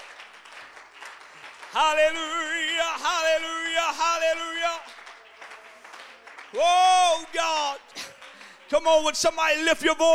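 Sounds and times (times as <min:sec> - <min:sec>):
audience clapping hands: 0:00.0 - 0:10.1
speech: 0:01.7 - 0:04.9, 0:06.5 - 0:07.8, 0:08.7 - 0:10.1.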